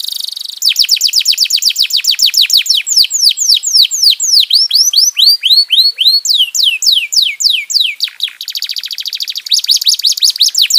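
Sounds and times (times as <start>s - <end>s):
domestic canary song: 0.0s - 10.7s.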